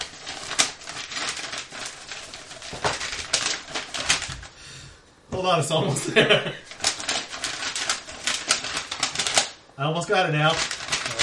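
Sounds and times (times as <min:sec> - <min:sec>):
sticky envelope tearing open: 0:00.0 - 0:04.6, 0:06.6 - 0:09.6, 0:10.4 - 0:11.2
speech: 0:05.4 - 0:06.7, 0:09.8 - 0:10.7.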